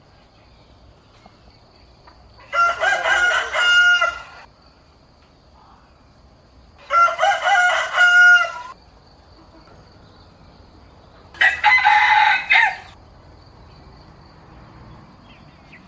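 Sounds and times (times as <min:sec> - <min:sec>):
rooster crowing: 0:02.4 - 0:04.5, 0:06.8 - 0:08.8, 0:11.3 - 0:13.0.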